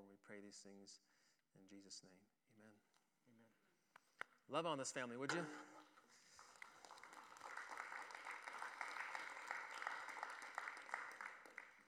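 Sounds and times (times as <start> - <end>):
speech: 0.1 - 3.6, 4.5 - 6.2
audience clapping: 5.8 - 11.8.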